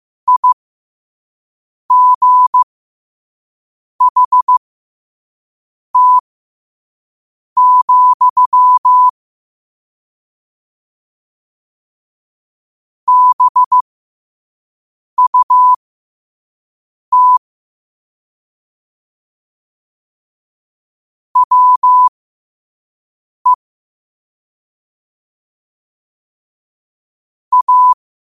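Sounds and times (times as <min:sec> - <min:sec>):
morse code at 5 wpm: 0:00.3 - 0:00.6, 0:01.9 - 0:02.6, 0:04.0 - 0:04.6, 0:06.0 - 0:06.2, 0:07.6 - 0:09.1, 0:13.1 - 0:13.8, 0:15.2 - 0:15.8, 0:17.1 - 0:17.4, 0:21.4 - 0:22.1, 0:27.5 - 0:28.0.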